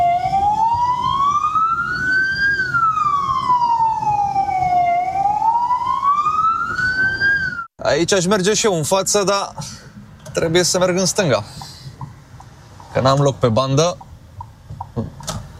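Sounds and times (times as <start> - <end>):
ambulance or police siren: 0.0 - 7.7
speech: 8.0 - 9.7, 10.4 - 11.6, 13.0 - 14.1.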